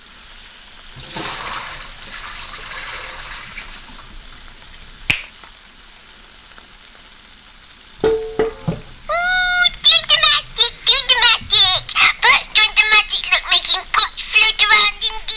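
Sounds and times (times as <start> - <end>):
hot water rushing and splashing while draining boiled potatoes: 0.7 - 15.0
sharp click: 5.1 - 5.5.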